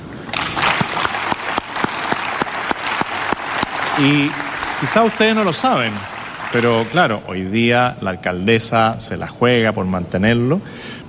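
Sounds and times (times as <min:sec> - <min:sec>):
audience applause: 0:00.0 - 0:07.8
speech: 0:04.0 - 0:11.0.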